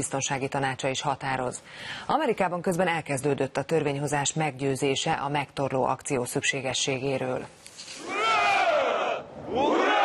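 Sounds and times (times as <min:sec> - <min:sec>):
speech: 0:00.0 - 0:07.8
sailors of the Moskva missile cruiser cheering hurrah as ship departs: 0:08.0 - 0:10.0.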